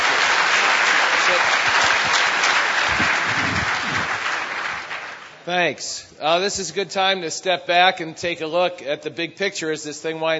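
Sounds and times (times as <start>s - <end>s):
audience applause: 0.0s - 5.4s
speech: 5.5s - 10.3s.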